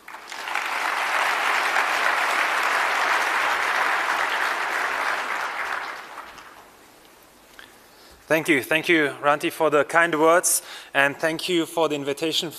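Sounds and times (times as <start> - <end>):
audience applause: 0.0 - 6.8
speech: 8.3 - 12.5.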